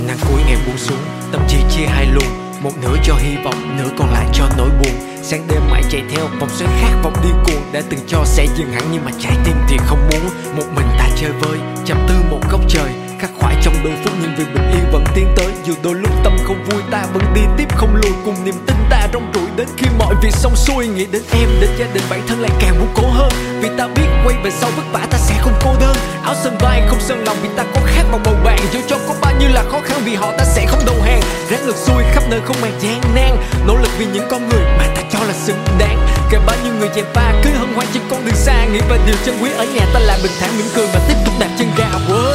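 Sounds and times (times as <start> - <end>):
rap ringtone music: 0.0 - 42.3.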